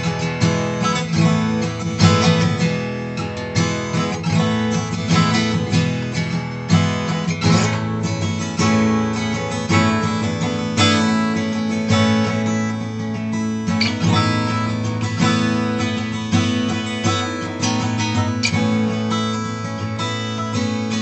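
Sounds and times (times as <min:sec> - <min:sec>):
light strum on a dreadnought guitar: 0:00.0 - 0:21.0.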